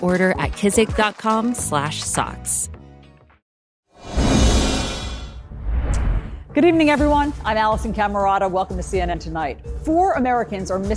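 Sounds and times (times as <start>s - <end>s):
speech: 0.0s - 2.8s, 6.6s - 10.9s
whoosh sound effect in an advert for Kizik hands-free shoes: 4.0s - 6.4s.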